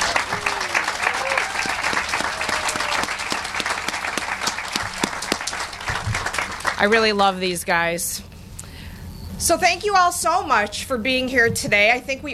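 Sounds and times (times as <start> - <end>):
crowd applauding: 0.0 - 7.2
speech: 6.8 - 8.3, 9.4 - 12.3.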